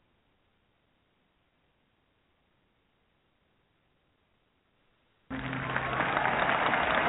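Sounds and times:
round of applause: 5.3 - 7.0.

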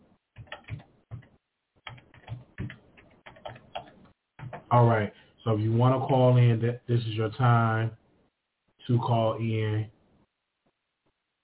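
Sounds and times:
typing a number on a computer keyboard: 0.4 - 4.7
speech: 4.7 - 8.0, 8.9 - 10.0.

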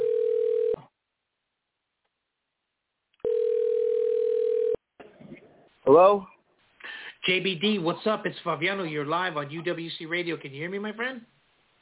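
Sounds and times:
telephone tone while a call is placed to a guest: 0.0 - 0.8, 3.2 - 4.8
speech: 5.9 - 6.3, 7.2 - 11.4.

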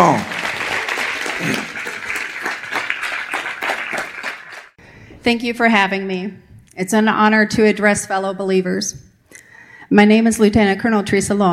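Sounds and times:
speech: 0.0 - 0.3, 1.4 - 1.7, 5.2 - 9.1, 9.9 - 11.5
audience hand clapping: 0.0 - 4.8.

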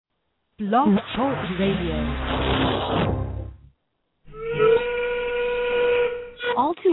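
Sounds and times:
speech: 0.6 - 3.2, 6.6 - 6.9
factory steam whistle blowing: 4.3 - 6.7.

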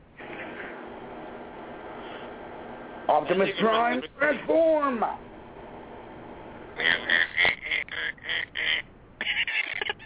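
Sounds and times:
speech: 3.1 - 5.3
duck quacking: 6.8 - 9.8.

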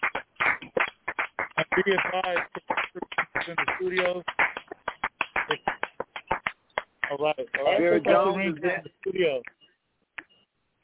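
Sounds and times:
audience applause: 0.0 - 6.5
speech: 1.8 - 4.4, 5.5 - 5.8, 7.1 - 9.5.

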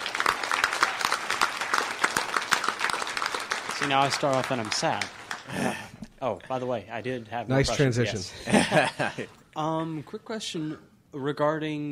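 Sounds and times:
audience applause: 0.0 - 5.9
speech: 3.8 - 11.8
laughter: 8.2 - 9.4.

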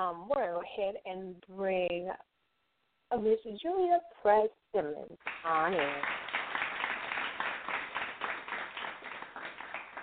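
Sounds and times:
speech: 0.0 - 2.3, 3.1 - 6.2
steady applause from a group of people: 5.2 - 10.0.

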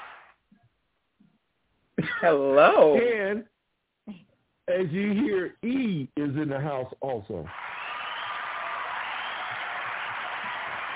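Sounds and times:
speech: 2.2 - 3.5, 4.1 - 7.7
hand clapping: 7.5 - 10.9.

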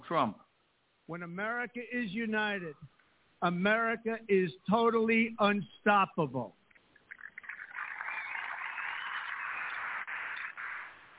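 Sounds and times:
speech: 0.1 - 0.4, 1.1 - 6.6
audience applause after a speech line: 7.1 - 11.1.

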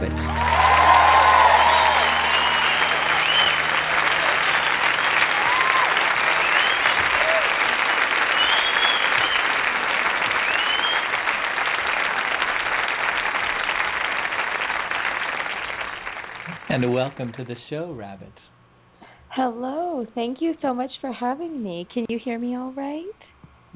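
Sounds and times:
concert crowd applause: 0.0 - 17.6
concert crowd whoops and whistles: 0.4 - 3.8, 5.4 - 7.5, 8.3 - 9.5, 10.4 - 11.1
speech: 16.8 - 18.6, 19.4 - 23.7.

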